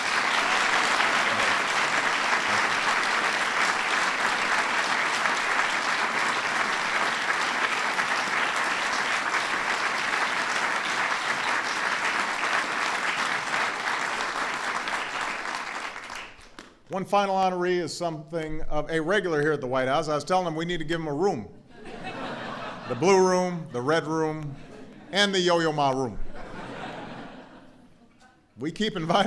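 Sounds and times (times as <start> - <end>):
audience applause: 0.0 - 16.8, 29.1 - 29.2
laughter: 0.8 - 3.0, 21.7 - 25.6, 26.2 - 29.2
speech: 17.0 - 21.6, 22.9 - 26.2, 28.6 - 29.2.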